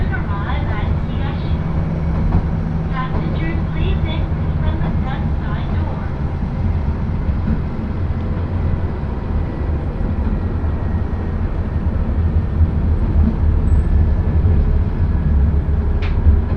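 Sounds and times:
Akechi Railway one-car railbus engine rumble: 0.0s - 16.5s
passengers chattering: 0.0s - 16.5s.

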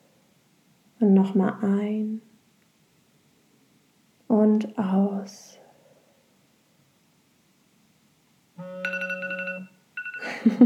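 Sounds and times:
speech: 1.0s - 2.3s, 4.5s - 5.6s, 10.4s - 10.6s
timer alarm: 8.6s - 10.6s.

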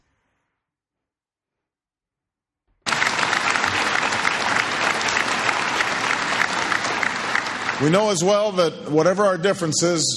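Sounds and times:
audience applause in played recording: 2.8s - 8.5s
speech: 7.8s - 10.1s.

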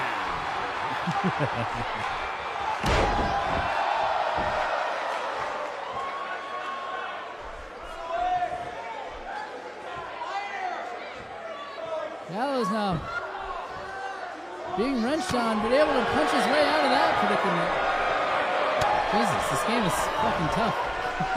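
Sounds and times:
crowd noise: 0.0s - 21.3s
laughter: 0.8s - 2.4s, 19.2s - 21.3s
speech: 1.1s - 2.2s, 12.4s - 13.2s, 14.8s - 18.0s, 19.1s - 21.3s
belly-to-back suplex slam in a wrestling video game: 2.7s - 5.6s.

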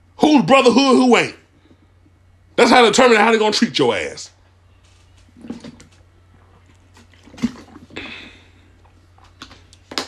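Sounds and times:
speech: 0.3s - 1.4s, 2.6s - 4.4s
soft swallowing: 5.4s - 9.7s
person slurping lemon water: 6.4s - 9.2s
breathy exhale: 7.9s - 8.7s.

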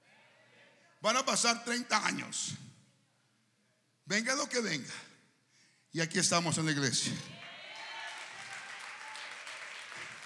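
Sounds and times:
speech: 1.0s - 2.7s, 4.1s - 5.1s, 5.9s - 7.4s
audience clapping in church: 7.4s - 10.2s.

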